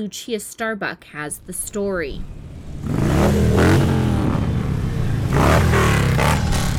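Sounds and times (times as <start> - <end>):
speech: 0.0 - 3.6
motorcycle engines revving and roaring during a bikers' rally ride through Reno and Virginia City, Nevada: 2.2 - 6.7
clatter: 5.3 - 6.7.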